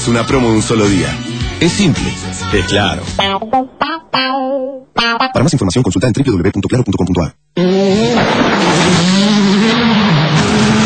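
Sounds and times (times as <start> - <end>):
speech: 0.0 - 4.4, 5.0 - 9.2
rally car engine roaring: 7.6 - 10.8.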